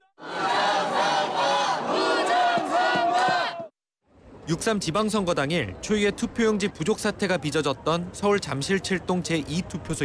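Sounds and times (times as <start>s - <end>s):
protest crowd chanting slogans: 0.0s - 3.7s
speech: 4.5s - 10.0s.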